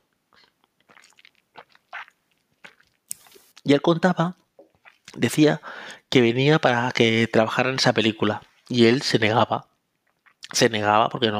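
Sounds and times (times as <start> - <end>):
person sipping drinking water: 0.3 - 3.6, 4.6 - 5.2, 10.0 - 10.5
speech: 3.7 - 4.4, 5.2 - 9.7, 10.5 - 11.3.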